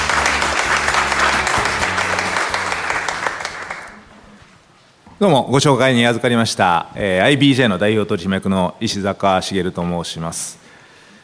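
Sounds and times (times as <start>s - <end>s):
applause: 0.0s - 4.2s
speech: 5.2s - 10.6s.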